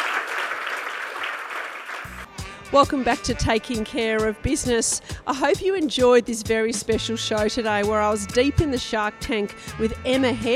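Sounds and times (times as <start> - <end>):
audience applause for guests on a studio business show: 0.0 - 2.3
speech: 2.7 - 10.5.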